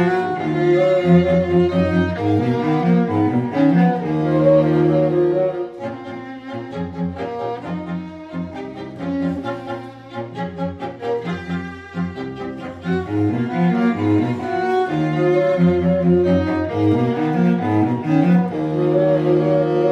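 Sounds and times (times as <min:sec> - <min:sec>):
piano: 0:00.0 - 0:19.8
string quartet: 0:00.0 - 0:19.8.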